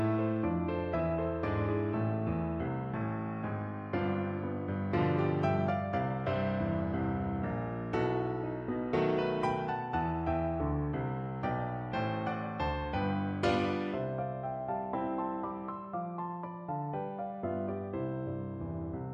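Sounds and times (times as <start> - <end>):
piano: 0.0 - 19.1.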